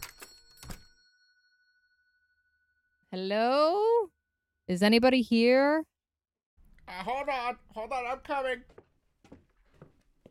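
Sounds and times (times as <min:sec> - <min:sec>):
shop door bell ringing: 0:00.0 - 0:03.0
speech: 0:03.1 - 0:05.9, 0:06.9 - 0:08.8.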